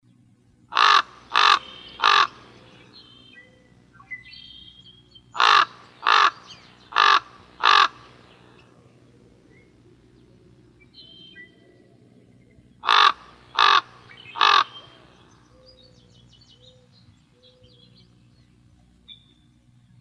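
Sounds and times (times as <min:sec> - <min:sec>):
corvids calling: 0:00.7 - 0:03.1, 0:05.3 - 0:08.8, 0:12.8 - 0:15.7.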